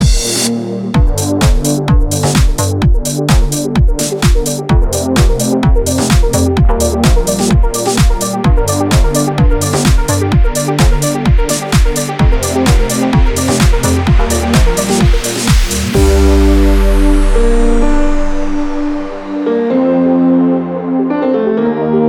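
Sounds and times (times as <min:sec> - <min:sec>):
instrumental remix: 0:00.0 - 0:22.0.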